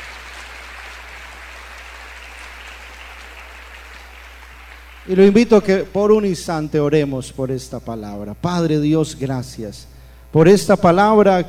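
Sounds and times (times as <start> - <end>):
audience applause: 0.0 - 5.7
speech: 5.0 - 11.4.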